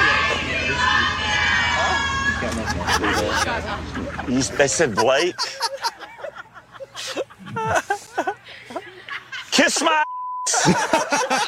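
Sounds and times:
crowd of fans cheering and shouting: 0.0s - 3.8s
laughter: 2.3s - 11.4s
speech: 3.4s - 5.7s, 9.7s - 10.0s, 10.6s - 11.4s.

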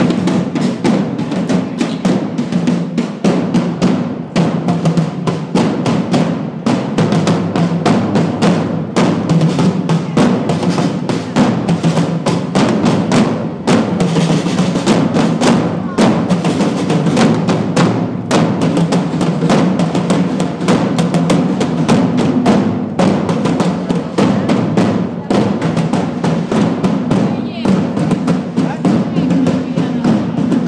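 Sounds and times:
medieval drums: 0.0s - 30.6s.

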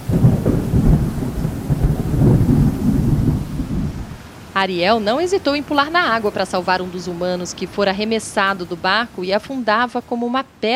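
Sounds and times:
deep rolling thunder: 0.0s - 4.5s
steady rain: 0.0s - 10.7s
speech: 4.6s - 10.7s.

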